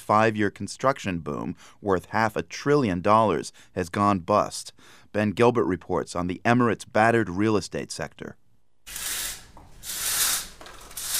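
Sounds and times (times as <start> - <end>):
speech: 0.1 - 9.1
window shades being opened: 8.9 - 11.1.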